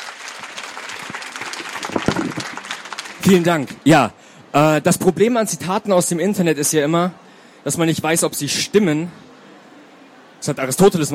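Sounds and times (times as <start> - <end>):
audience applause: 0.0 - 3.6
speech: 3.2 - 9.3, 10.4 - 11.1.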